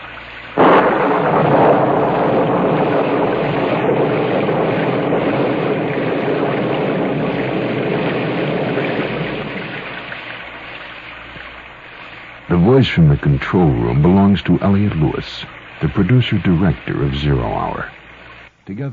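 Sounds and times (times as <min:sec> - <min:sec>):
rain sound effect: 0:00.0 - 0:18.9
speech: 0:12.8 - 0:18.0, 0:18.7 - 0:18.9.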